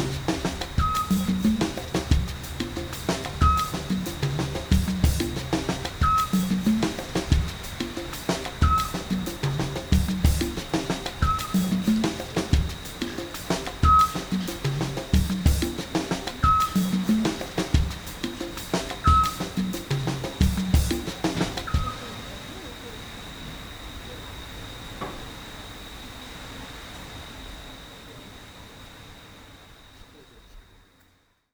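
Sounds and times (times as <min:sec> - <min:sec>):
music groove: 0:00.0 - 0:22.1.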